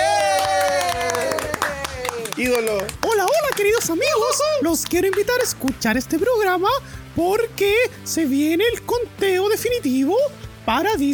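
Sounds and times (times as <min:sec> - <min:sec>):
scattered hand claps of applause: 0:00.0 - 0:05.8
speech: 0:02.4 - 0:11.1.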